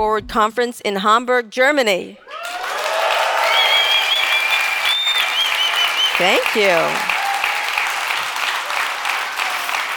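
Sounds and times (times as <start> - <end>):
speech: 0.0 - 2.3, 6.2 - 7.1
conference audience in Hamburg, Germany applauding: 2.4 - 9.9
shrill whistles: 3.4 - 6.6.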